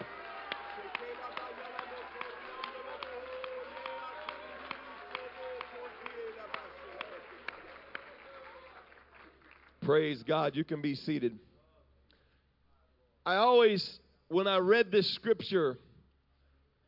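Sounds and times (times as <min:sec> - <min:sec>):
people shouting praise: 0:00.0 - 0:07.1
people clapping: 0:00.0 - 0:10.4
speech: 0:09.9 - 0:11.5, 0:13.3 - 0:15.9.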